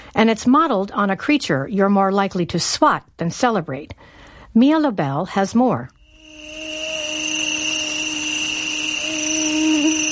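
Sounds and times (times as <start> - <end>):
speech: 0.2 - 6.0
mosquito whine: 6.0 - 10.0.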